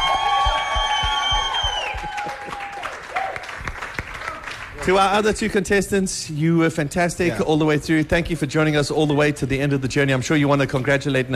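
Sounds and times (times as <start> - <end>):
round of applause: 0.0 - 5.2
speech: 4.8 - 11.3.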